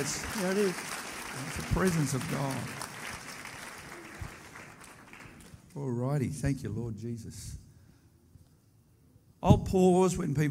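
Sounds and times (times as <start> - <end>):
speech: 0.0 - 2.9, 5.8 - 7.6, 9.4 - 10.4
church congregation clapping: 0.0 - 5.9.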